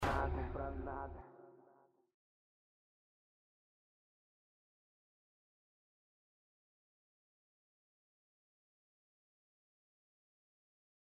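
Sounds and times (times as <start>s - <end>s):
national hip hop music: 0.0s - 1.7s.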